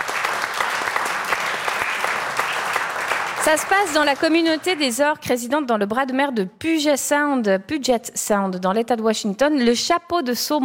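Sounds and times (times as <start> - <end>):
audience clapping: 0.0 - 5.1
speech: 3.4 - 10.6.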